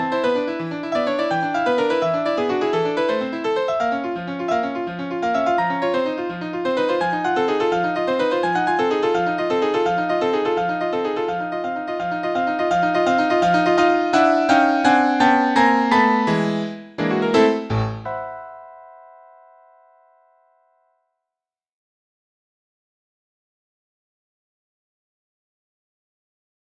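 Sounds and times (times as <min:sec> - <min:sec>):
tarantella on piano: 0:00.0 - 0:19.8.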